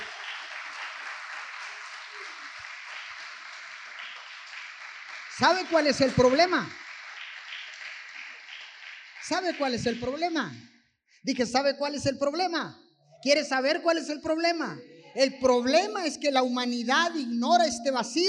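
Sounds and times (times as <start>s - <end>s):
audience applause: 0.0s - 10.2s
speech: 5.4s - 6.8s, 9.3s - 18.2s.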